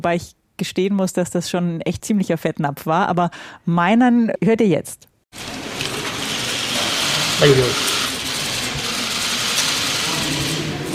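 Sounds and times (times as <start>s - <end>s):
speech: 0.0s - 5.5s, 7.4s - 7.9s
cameras clicking: 5.8s - 10.9s.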